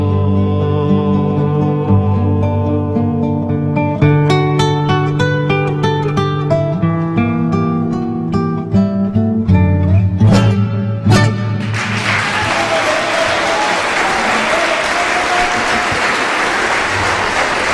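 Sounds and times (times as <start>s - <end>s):
folk music by a live duo: 0.1s - 12.1s
audience applause for a live folk duo: 11.6s - 17.7s.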